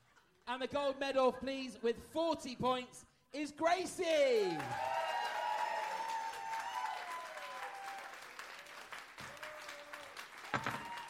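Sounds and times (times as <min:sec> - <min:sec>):
speech: 0:00.5 - 0:05.0
audience round of applause: 0:04.4 - 0:11.0.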